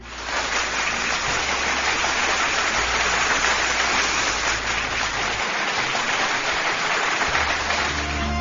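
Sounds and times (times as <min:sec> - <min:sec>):
applause: 0:00.0 - 0:08.3.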